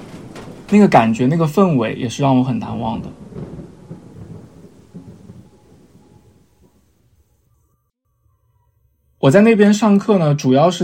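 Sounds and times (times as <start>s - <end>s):
heavy rain drumming on a tin roof: 0.0s - 6.3s
speech: 0.7s - 3.2s, 9.3s - 10.8s.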